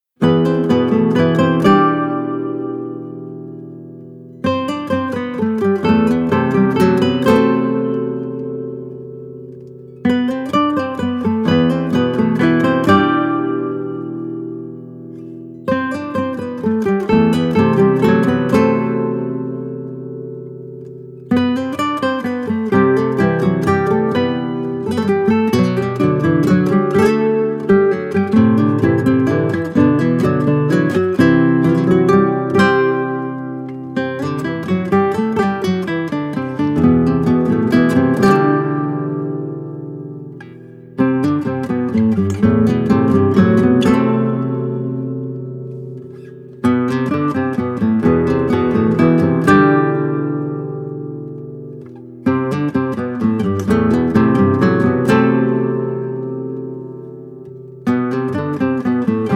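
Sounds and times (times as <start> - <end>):
guitar version of a song: 0.0 - 59.3.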